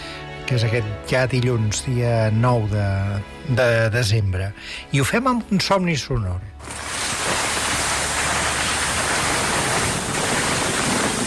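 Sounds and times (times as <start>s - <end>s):
speech: 0.5s - 6.8s
sled gliding: 6.6s - 11.2s.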